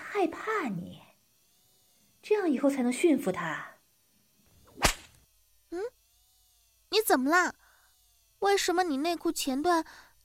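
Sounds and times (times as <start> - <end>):
speech: 0.2 - 1.1, 2.2 - 3.7, 5.7 - 6.0, 6.9 - 7.6, 8.4 - 10.0
whip crack during a lashing: 4.7 - 5.2.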